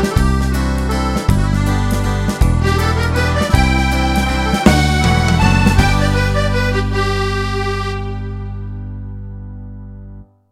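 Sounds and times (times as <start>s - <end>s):
accordion playing an Irish waltz: 0.0s - 9.3s.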